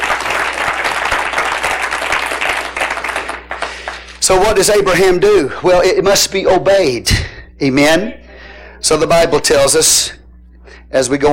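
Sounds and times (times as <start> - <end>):
audience clapping hands in praise: 0.0 - 4.2
speech: 4.2 - 8.2, 8.8 - 10.2, 10.9 - 11.3.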